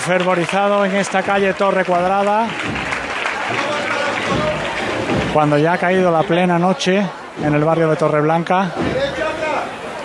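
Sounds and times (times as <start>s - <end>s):
speech: 0.0s - 2.8s, 3.5s - 4.6s, 5.3s - 9.0s
crowd applauding a religious procession float: 0.0s - 10.0s.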